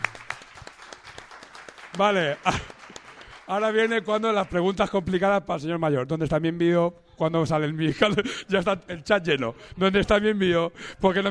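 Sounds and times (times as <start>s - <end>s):
audience applause: 0.0s - 4.8s
speech: 2.0s - 2.8s, 3.5s - 11.3s
laughter: 2.2s - 3.1s.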